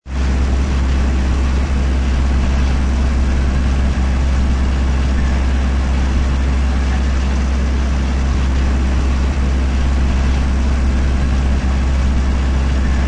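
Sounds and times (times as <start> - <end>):
small farm tractor driving: 0.0 - 13.0.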